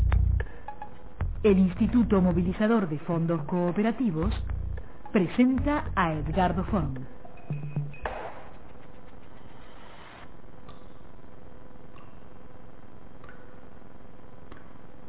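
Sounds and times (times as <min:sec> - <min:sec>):
speech: 0:01.4 - 0:04.5, 0:05.1 - 0:07.8
water dripping: 0:13.2 - 0:13.7.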